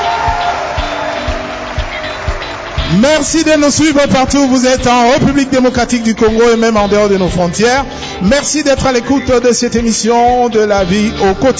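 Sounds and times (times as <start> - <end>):
audience applause and cheering in a university amphitheatre: 0.0 - 5.8
rhythmic low thumps: 0.0 - 11.5
speech: 2.9 - 11.5.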